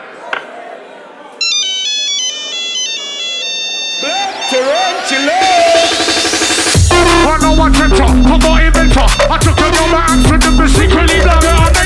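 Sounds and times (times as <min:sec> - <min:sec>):
mobile phone ringtone: 0:01.4 - 0:11.4
speech: 0:07.3 - 0:11.8.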